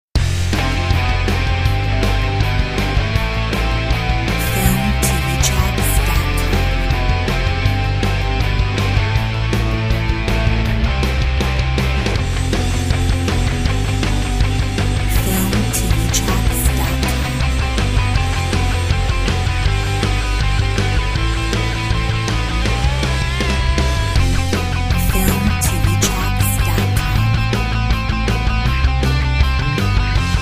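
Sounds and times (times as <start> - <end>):
indie rock music: 0.2 - 30.4.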